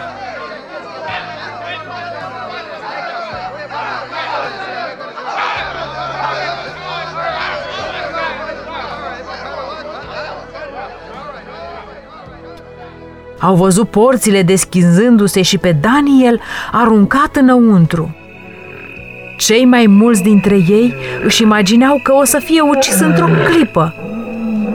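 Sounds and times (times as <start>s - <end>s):
speech: 13.4s - 18.2s, 19.4s - 24.0s
crowd of people murmuring: 18.4s - 24.7s.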